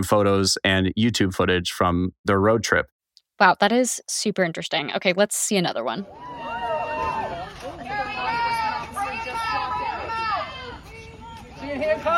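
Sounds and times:
speech: 0:00.0 - 0:06.3, 0:11.7 - 0:12.1
crowd of people outside a house: 0:06.0 - 0:12.1.

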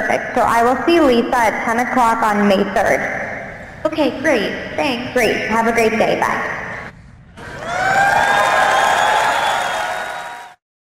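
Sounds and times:
speech: 0:00.1 - 0:03.2, 0:03.9 - 0:06.6
audience cheering and applauding: 0:07.4 - 0:10.6.

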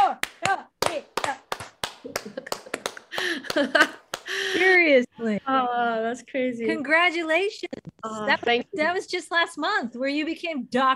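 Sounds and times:
slow hand clapping: 0:00.2 - 0:04.4
speech: 0:03.6 - 0:04.0, 0:04.8 - 0:10.9.

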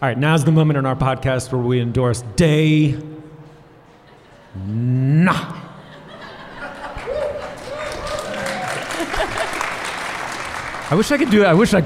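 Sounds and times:
speech: 0:00.0 - 0:03.1, 0:04.5 - 0:05.6, 0:10.9 - 0:11.8
laughter: 0:04.0 - 0:09.9
audience applause: 0:06.8 - 0:11.8
people whooping: 0:06.9 - 0:09.7.

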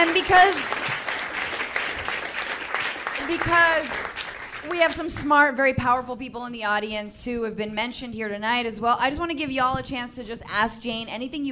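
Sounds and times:
speech: 0:00.0 - 0:00.8, 0:03.3 - 0:11.5
audience applause for a speaker at a live event: 0:00.0 - 0:05.0.

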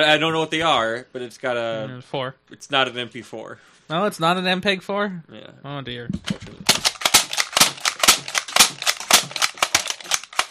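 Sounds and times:
speech: 0:00.0 - 0:06.9
toy dart gun firing: 0:06.7 - 0:10.5.

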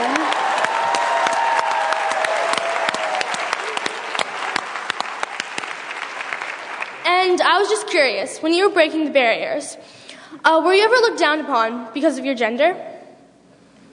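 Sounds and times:
whoop or cheer: 0:00.0 - 0:04.0
audience applause: 0:00.0 - 0:07.1
speech: 0:07.9 - 0:12.9.

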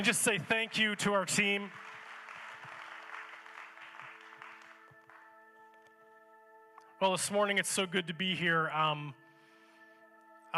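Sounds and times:
speech: 0:00.0 - 0:01.9, 0:07.0 - 0:09.2
audience applause: 0:00.0 - 0:05.3.

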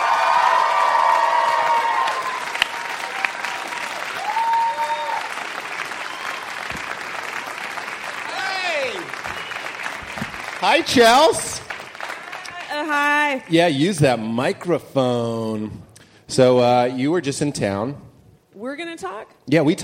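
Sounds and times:
audience applause and cheering: 0:00.0 - 0:13.5
speech: 0:10.6 - 0:11.5, 0:12.9 - 0:18.0, 0:18.8 - 0:19.8.

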